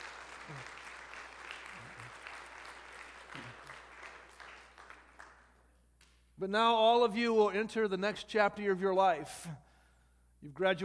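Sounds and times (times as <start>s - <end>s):
audience clapping: 0.0s - 6.2s
speech: 0.5s - 0.8s, 6.4s - 9.6s, 10.4s - 10.8s.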